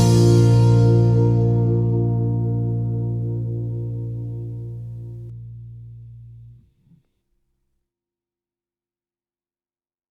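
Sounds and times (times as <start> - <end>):
B flat major triad vamp: 0.0 - 6.4.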